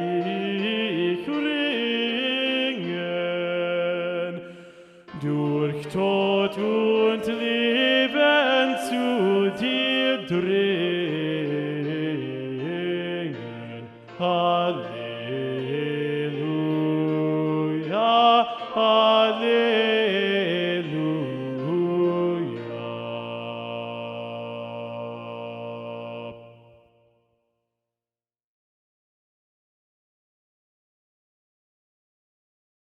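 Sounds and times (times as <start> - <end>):
bass voice singing a motet: 0.0 - 4.4, 5.1 - 26.6.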